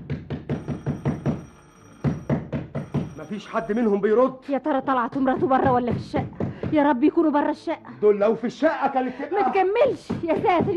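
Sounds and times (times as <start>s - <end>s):
knocking on an apartment door: 0.0s - 3.2s, 5.2s - 6.9s, 10.0s - 10.7s
speech: 3.3s - 10.7s.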